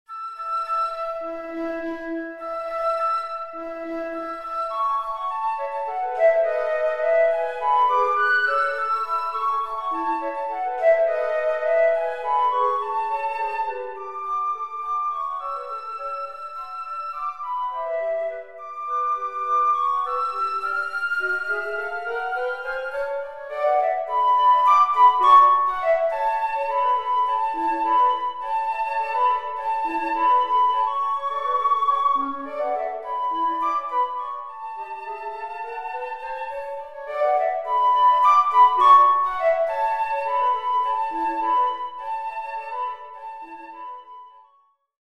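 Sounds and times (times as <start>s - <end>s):
flute trio playing: 0.1s - 44.6s.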